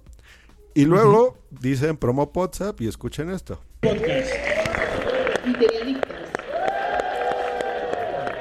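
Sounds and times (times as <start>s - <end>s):
speech: 0.8s - 4.5s, 5.4s - 6.2s
audience applause and cheering: 3.8s - 8.4s.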